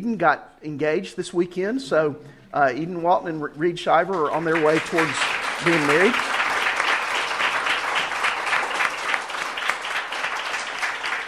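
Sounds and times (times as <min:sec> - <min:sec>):
speech: 0:00.0 - 0:06.3
audience applauding: 0:04.1 - 0:11.2.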